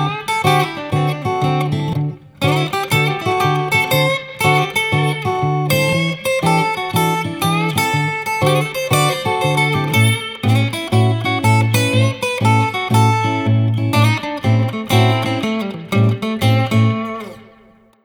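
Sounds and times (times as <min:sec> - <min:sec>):
acoustic guitars jamming: 0:00.0 - 0:18.0.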